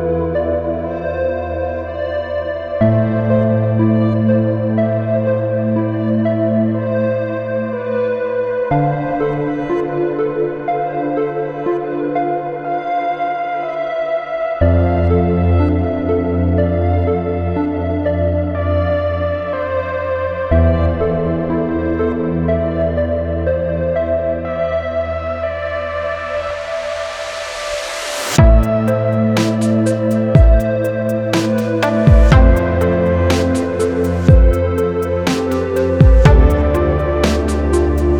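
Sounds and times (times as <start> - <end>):
ambient techno house music: 0.0 - 38.1.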